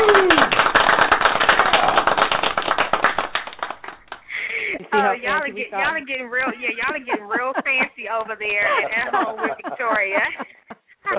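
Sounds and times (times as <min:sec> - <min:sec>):
clapping: 0:00.0 - 0:04.4
laughter: 0:04.3 - 0:11.1
speech: 0:05.5 - 0:10.4.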